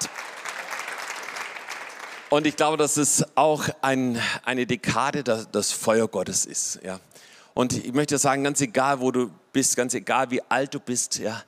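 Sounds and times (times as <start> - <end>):
audience applauding: 0.0 - 2.8
speech: 2.3 - 11.4.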